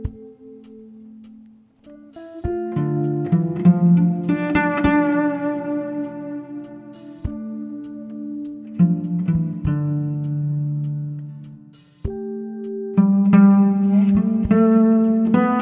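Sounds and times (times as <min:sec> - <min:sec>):
cello: 0:02.7 - 0:11.4, 0:13.0 - 0:15.5.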